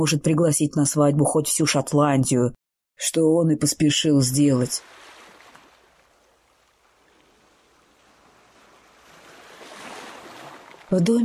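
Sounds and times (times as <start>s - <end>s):
speech: 0.0s - 5.1s, 10.9s - 11.2s
sea waves: 4.2s - 11.2s.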